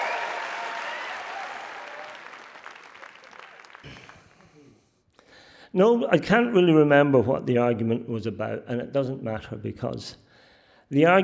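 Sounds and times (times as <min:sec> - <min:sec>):
audience round of applause: 0:00.0 - 0:04.7
speech: 0:05.7 - 0:10.2, 0:10.9 - 0:11.2.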